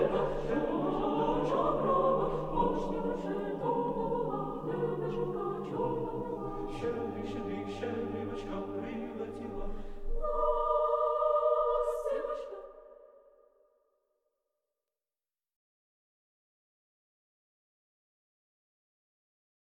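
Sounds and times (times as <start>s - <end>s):
carol music: 0.0s - 13.2s.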